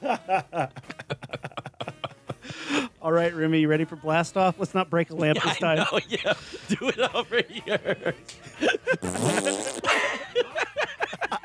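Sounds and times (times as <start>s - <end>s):
laughter: 0.0s - 2.7s, 5.2s - 11.4s
speech: 3.1s - 8.5s
fart: 9.0s - 9.9s.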